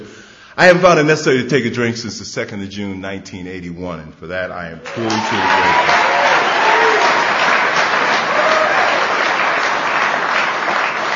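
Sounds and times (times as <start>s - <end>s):
speech: 0.6s - 6.2s
audience applause: 4.9s - 11.1s.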